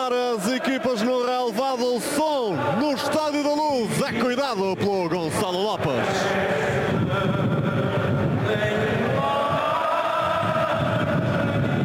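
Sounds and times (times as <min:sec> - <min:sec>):
speech: 0:00.0 - 0:07.5
strong wind at a football stadium: 0:02.6 - 0:11.8.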